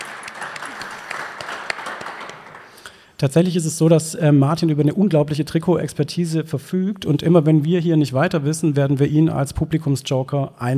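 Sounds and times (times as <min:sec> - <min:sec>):
audience applause: 0:00.0 - 0:02.8
speech: 0:03.2 - 0:10.7.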